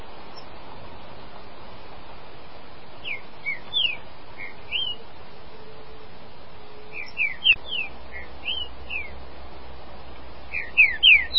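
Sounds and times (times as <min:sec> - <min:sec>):
green-winged saltator singing: 0:03.0 - 0:09.3, 0:10.4 - 0:11.3.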